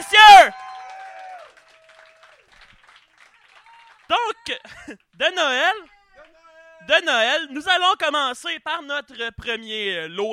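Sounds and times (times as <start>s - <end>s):
audience applause: 0.0s - 4.6s
speech: 4.1s - 6.0s, 6.8s - 10.3s.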